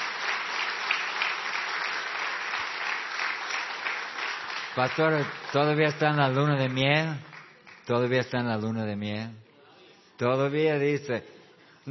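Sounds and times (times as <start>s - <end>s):
audience applause: 0.0s - 7.9s
speech: 4.8s - 7.3s, 7.9s - 9.4s, 10.2s - 11.3s.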